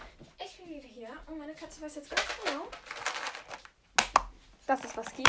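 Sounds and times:
speech: 1.3s - 2.9s, 4.7s - 5.2s
treat packet being opened: 2.1s - 3.7s.

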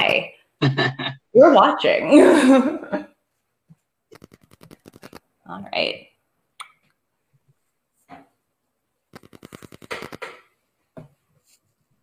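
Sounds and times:
speech: 0.2s - 3.1s, 5.5s - 6.1s
playing cards being shuffled: 4.1s - 5.2s, 9.1s - 10.5s.

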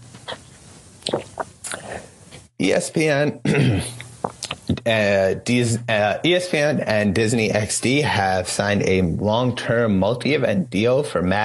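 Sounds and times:
person drinking water: 0.2s - 2.5s, 3.9s - 4.8s
speech: 2.6s - 4.0s, 4.8s - 11.4s.

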